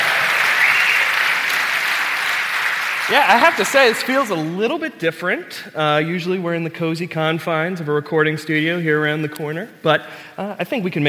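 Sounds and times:
live audience applause: 0:00.0 - 0:04.6
speech: 0:03.1 - 0:11.0.

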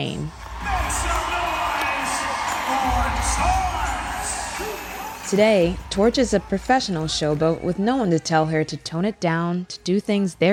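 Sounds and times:
crowd cheering in an arena: 0:00.1 - 0:08.4
speech: 0:05.3 - 0:10.5.

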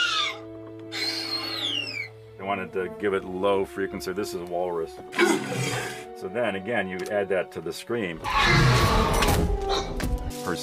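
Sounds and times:
baby dolphin calls: 0:00.0 - 0:02.2
speech: 0:02.5 - 0:09.2, 0:10.5 - 0:10.6.

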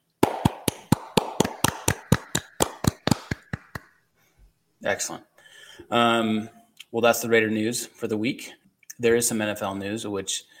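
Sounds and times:
people clapping: 0:00.2 - 0:03.9
speech: 0:04.8 - 0:10.5.

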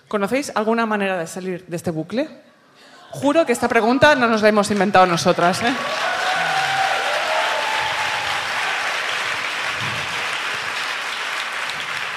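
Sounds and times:
speech: 0:00.1 - 0:02.5, 0:03.1 - 0:06.0
audience applause: 0:05.7 - 0:12.1.

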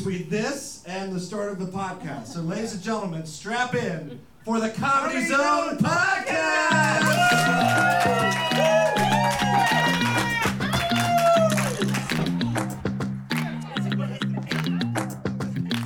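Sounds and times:
speech: 0:00.0 - 0:08.4
podcast intro music beat: 0:06.7 - 0:15.8.

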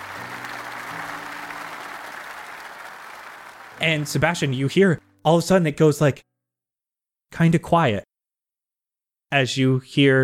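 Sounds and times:
crowd applause: 0:00.0 - 0:04.6
speech: 0:03.8 - 0:06.3, 0:07.3 - 0:08.0, 0:09.3 - 0:10.2.

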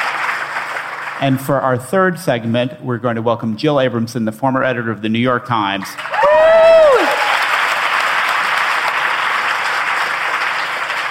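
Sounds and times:
audience applause: 0:00.0 - 0:01.4, 0:06.0 - 0:11.0
speech: 0:01.2 - 0:06.2.

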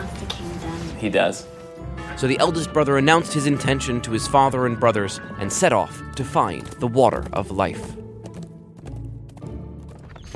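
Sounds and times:
dense sustained musical backdrop: 0:00.0 - 0:10.3
speech: 0:01.0 - 0:01.6, 0:02.2 - 0:08.0
galloping horse hooves: 0:05.5 - 0:10.3.

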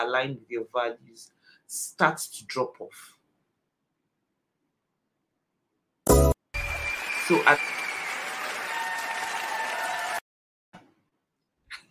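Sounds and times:
speech: 0:00.0 - 0:03.2, 0:07.3 - 0:07.8
round of applause from audience: 0:06.6 - 0:10.2.

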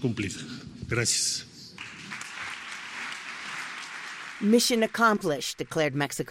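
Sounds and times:
speech: 0:00.0 - 0:01.5, 0:04.4 - 0:06.2
audience of business leaders and politicians applauding at Mexico's presidential palace: 0:01.8 - 0:05.9.

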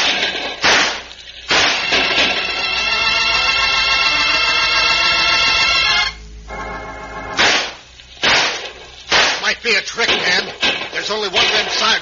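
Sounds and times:
gunshots in a western shootout: 0:00.0 - 0:02.6, 0:07.4 - 0:12.0
long sustained ringing tone: 0:01.7 - 0:07.4.

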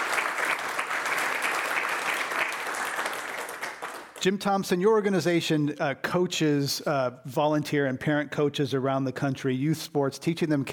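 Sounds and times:
audience applause: 0:00.0 - 0:04.2
speech: 0:04.2 - 0:10.7.

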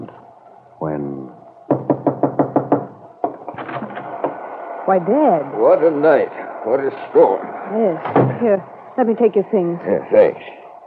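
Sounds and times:
speech: 0:00.8 - 0:01.4, 0:04.9 - 0:10.6
fingers drumming on a window pane: 0:01.7 - 0:04.4.

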